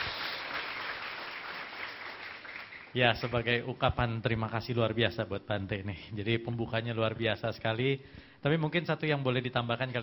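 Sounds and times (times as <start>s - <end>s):
faint applause for the Buddhist monk Bhante Uttamo Mahathera: 0.0s - 3.0s
speech: 2.9s - 10.0s.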